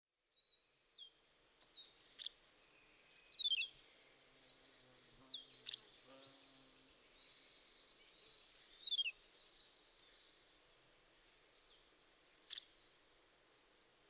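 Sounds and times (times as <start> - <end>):
spotted flycatcher squeaky calls: 2.1 - 3.7, 5.5 - 6.0, 8.6 - 9.1, 12.4 - 12.8.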